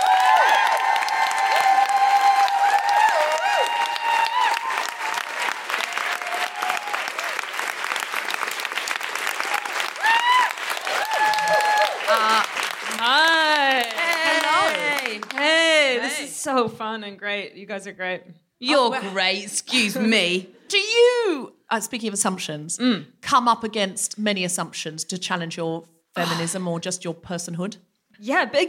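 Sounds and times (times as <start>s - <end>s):
audience applauding and cheering for comedian Mae Martin at a live comedy show: 0.0s - 16.3s
speech: 16.6s - 21.1s, 21.7s - 28.6s.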